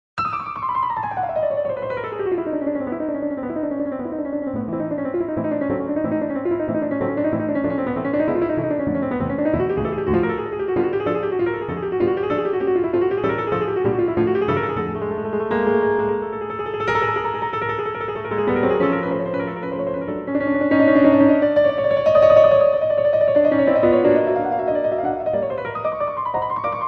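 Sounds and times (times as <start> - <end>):
fast piano piece: 0.2 - 26.8.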